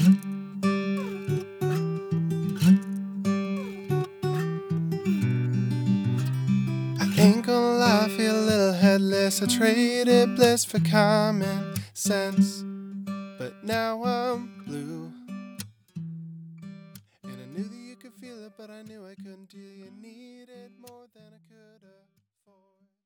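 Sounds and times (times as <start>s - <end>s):
acoustic music: 0.0s - 17.7s.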